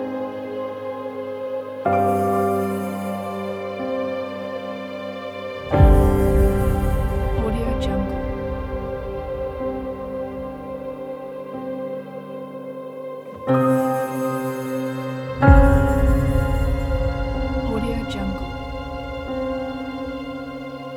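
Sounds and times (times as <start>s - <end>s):
sad dramatic piano soundscape: 0.0s - 20.9s.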